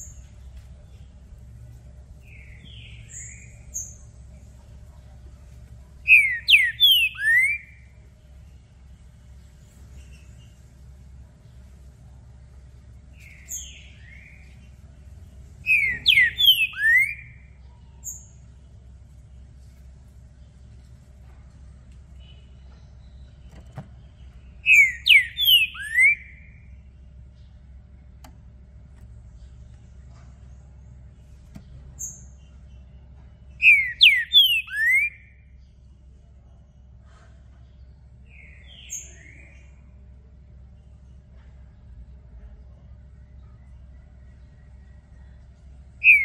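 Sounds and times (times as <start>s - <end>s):
faint low hum: 0.0s - 46.2s
Green-winged saltator whistled song: 6.1s - 7.8s, 15.6s - 17.5s, 24.6s - 26.6s, 33.6s - 35.4s, 46.0s - 46.2s.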